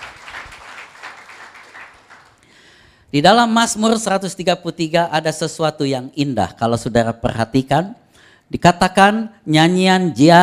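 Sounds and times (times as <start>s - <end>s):
audience applause: 0.0s - 2.4s
speech: 3.1s - 10.4s.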